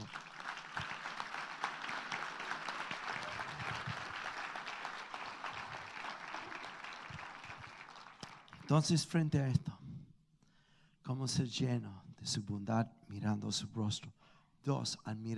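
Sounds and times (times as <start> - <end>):
audience applause: 0.0 - 8.7
speech: 8.7 - 9.8, 11.1 - 15.3.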